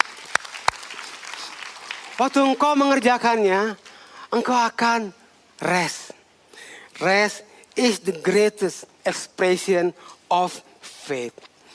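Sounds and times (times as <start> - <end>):
group applauding: 0.0 - 4.1
speech: 2.2 - 6.0, 7.0 - 11.5.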